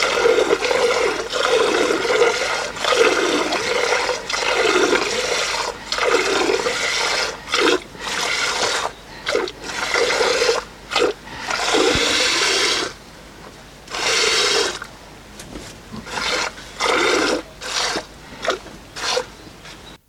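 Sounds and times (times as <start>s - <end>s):
buffalo being milked on a farm in Nepal: 0.0s - 20.0s.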